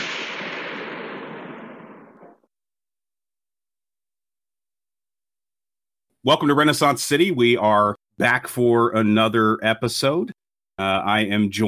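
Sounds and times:
gunshot from a gun held to the temple: 0.0 - 2.4
speech: 6.2 - 11.6.

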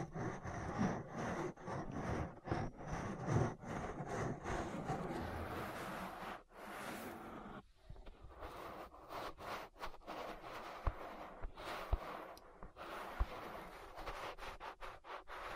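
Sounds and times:
sharp brushing strokes: 0.0 - 7.7, 8.3 - 15.5
ear massage rubbing and scratching: 0.0 - 15.5.

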